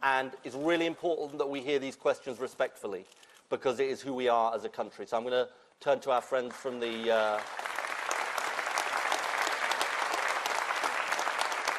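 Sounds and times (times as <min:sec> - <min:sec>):
speech: 0:00.0 - 0:07.7
audience applause: 0:06.8 - 0:11.7.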